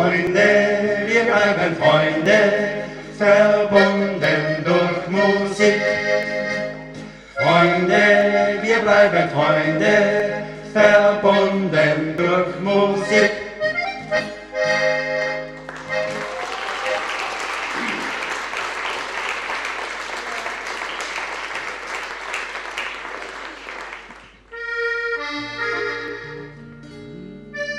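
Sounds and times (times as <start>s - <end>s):
Oberkrainer folk music medley: 0.0s - 17.0s, 24.2s - 27.7s.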